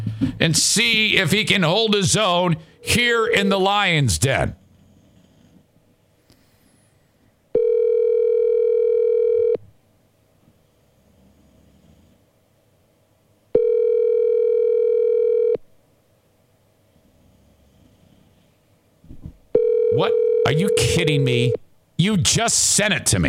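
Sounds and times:
speech: 0.1s - 4.6s, 20.6s - 23.2s
outgoing phone call ringback tone: 2.8s - 3.6s, 7.6s - 9.6s, 13.6s - 15.6s, 19.6s - 21.6s.

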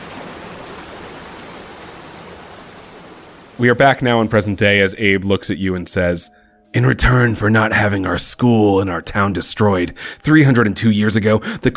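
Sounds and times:
rain beginning to fall: 0.0s - 5.1s
speech: 3.6s - 11.7s.

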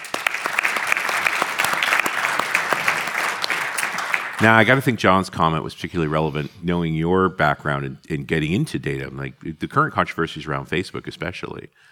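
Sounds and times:
audience applause welcoming a guest onto a software talk show: 0.0s - 5.0s
speech: 4.4s - 11.8s.

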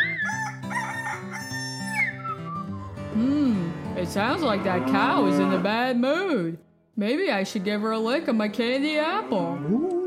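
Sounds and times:
rooster crowing: 0.0s - 2.1s
cheerful music: 0.0s - 9.1s
speech: 3.2s - 10.0s.

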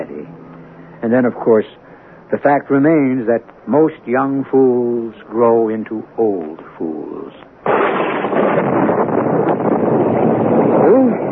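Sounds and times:
speech: 1.0s - 7.4s
storm wind under roof tiles: 7.1s - 11.3s.

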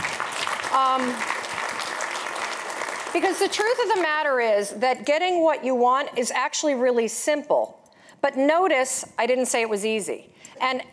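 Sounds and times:
crowd clapping: 0.0s - 4.2s
speech: 0.8s - 1.4s, 3.1s - 10.9s.

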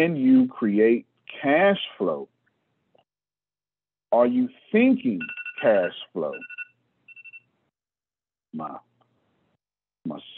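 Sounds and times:
speech: 0.0s - 2.3s, 4.1s - 6.5s, 8.5s - 8.9s, 10.0s - 10.3s
phone alarm going off: 5.2s - 7.5s.

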